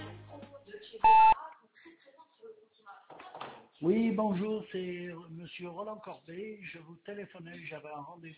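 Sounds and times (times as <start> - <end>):
answering machine beep signalling to leave a message: 1.0 - 1.4
speech: 3.8 - 8.3.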